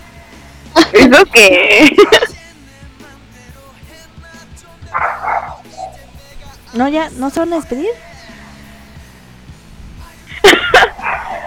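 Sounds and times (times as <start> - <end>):
laughter: 0.8 - 2.4, 10.3 - 11.4
speech: 1.0 - 2.3, 6.8 - 8.1
dog barking: 4.9 - 6.3, 10.8 - 11.4.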